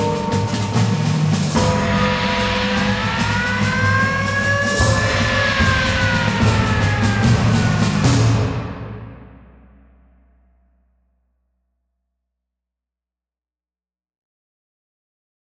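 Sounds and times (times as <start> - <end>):
percussion: 0.0 - 10.8.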